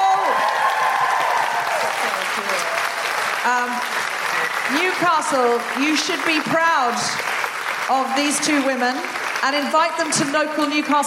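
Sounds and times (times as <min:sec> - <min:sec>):
audience applause: 0:00.0 - 0:11.0
people calling out and cheering: 0:00.0 - 0:11.0
speech: 0:03.4 - 0:04.0, 0:04.7 - 0:07.3, 0:07.9 - 0:11.0.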